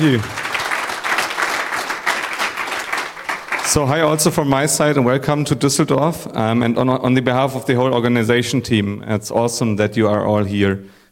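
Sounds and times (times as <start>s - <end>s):
speech: 0.0s - 0.4s, 3.7s - 11.0s
conference audience applause in Düsseldorf welcoming a local organizer: 0.0s - 4.1s.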